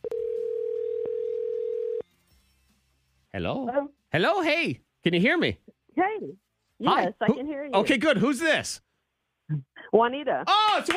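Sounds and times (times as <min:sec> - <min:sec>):
telephone line tone while placing a call to an internet phone number: 0:00.0 - 0:02.0
speech: 0:03.4 - 0:08.9, 0:09.5 - 0:10.9.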